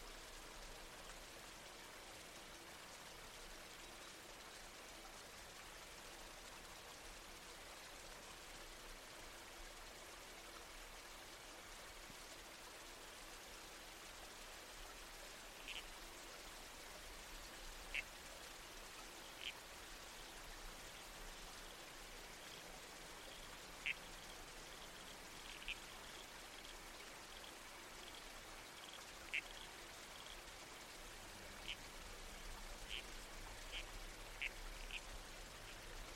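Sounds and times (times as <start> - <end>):
flowing water: 0.0 - 36.1
wind: 0.0 - 36.1
red-crowned toadlet rasping calls: 15.6 - 15.9, 19.4 - 19.6, 23.2 - 24.1, 24.8 - 26.1, 28.8 - 30.3, 31.6 - 31.8, 32.8 - 35.1.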